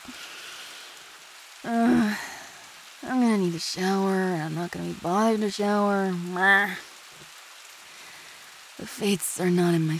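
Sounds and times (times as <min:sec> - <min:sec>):
rain falling: 0:00.0 - 0:09.9
person groaning: 0:01.7 - 0:02.4
speech: 0:03.4 - 0:06.9, 0:08.8 - 0:09.9.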